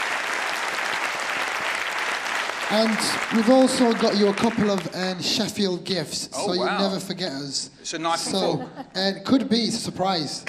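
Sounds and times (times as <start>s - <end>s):
audience applause: 0.0s - 5.3s
speech: 2.7s - 10.4s
laughter: 8.2s - 9.4s.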